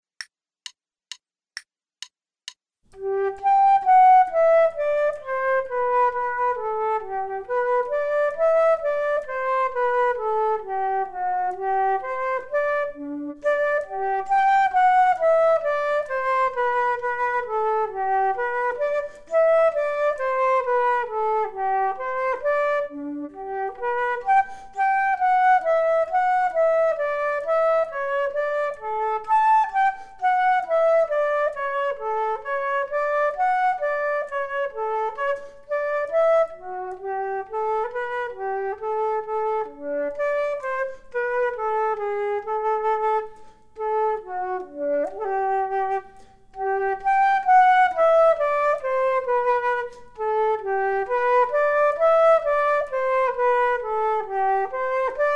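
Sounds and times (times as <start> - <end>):
flute duet: 2.9 - 55.3.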